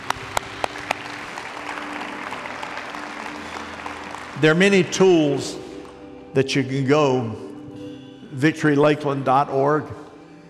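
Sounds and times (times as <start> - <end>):
audience clapping: 0.0 - 4.4
speech: 4.4 - 5.6, 6.3 - 7.4, 8.3 - 10.0.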